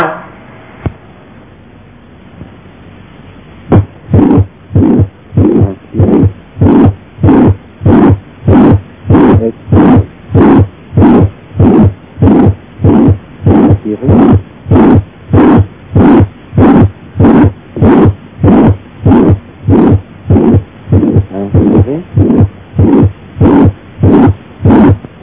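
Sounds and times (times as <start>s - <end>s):
heartbeat with systolic regurgitant murmur from tricuspid valve regurgitation: 3.7s - 25.2s.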